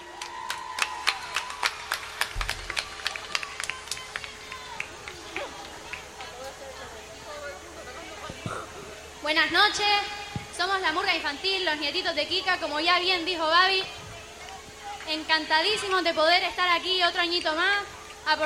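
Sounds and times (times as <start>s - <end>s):
audience applause: 0.0s - 7.0s
crowd murmur: 0.0s - 18.4s
speech: 9.3s - 14.0s, 15.1s - 18.4s.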